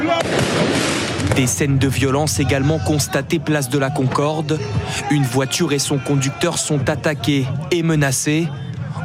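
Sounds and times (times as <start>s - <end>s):
firework mortar shots fired at police: 0.2s - 1.4s
speech: 1.4s - 9.0s.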